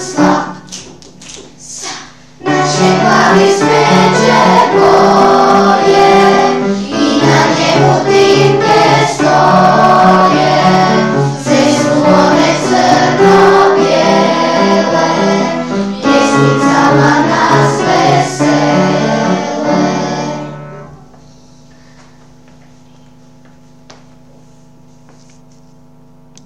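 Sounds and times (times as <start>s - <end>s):
piano: 0.0s - 1.6s, 2.2s - 21.6s.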